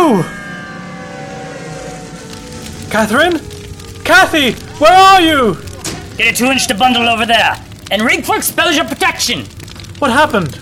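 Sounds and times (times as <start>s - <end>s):
fire engine sirens: 0.0s - 7.9s
speech: 0.1s - 0.4s, 2.9s - 5.6s, 6.2s - 10.6s
fire engine rumbling engine noise: 0.4s - 10.6s.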